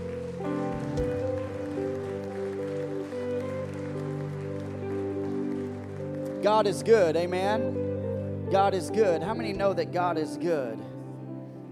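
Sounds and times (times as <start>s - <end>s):
audience hand clapping: 0.0s - 7.5s
speech: 6.4s - 7.8s, 8.5s - 10.9s.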